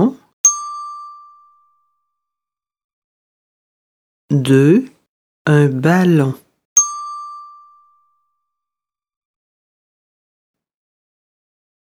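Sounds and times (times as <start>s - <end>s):
bell chime signal: 0.4s - 1.9s, 6.8s - 8.2s
speech: 4.3s - 4.9s, 5.5s - 6.4s.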